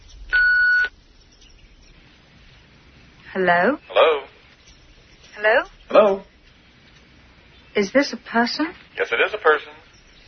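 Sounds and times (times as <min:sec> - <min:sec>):
answering machine beep: 0:00.3 - 0:00.9
speech: 0:03.4 - 0:04.2, 0:05.4 - 0:06.3, 0:07.8 - 0:09.8.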